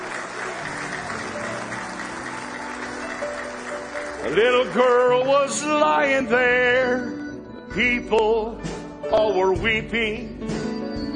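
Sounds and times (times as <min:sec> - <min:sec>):
large crowd clapping in a reverberant room: 0:00.0 - 0:06.1
speech: 0:04.2 - 0:10.6.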